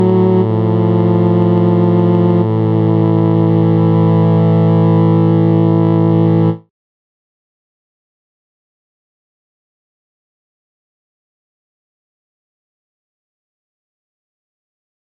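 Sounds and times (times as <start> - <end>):
Novachord chords: 0.0 - 6.6.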